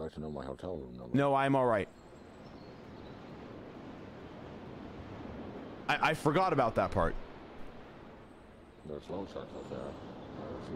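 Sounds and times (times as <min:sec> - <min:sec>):
speech: 0:00.1 - 0:02.1, 0:05.9 - 0:07.3, 0:08.8 - 0:10.7
soft ocean surf in the video game Jazzpunk: 0:01.2 - 0:10.7.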